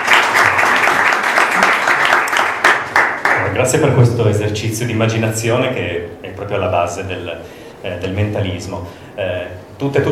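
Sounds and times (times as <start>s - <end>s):
audience applause: 0.0s - 3.6s
speech: 3.6s - 10.1s.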